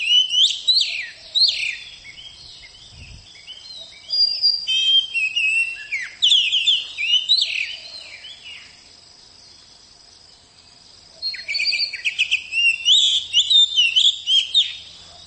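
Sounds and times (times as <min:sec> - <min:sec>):
Oriental magpie-robin song: 0:00.0 - 0:08.8, 0:11.2 - 0:15.2.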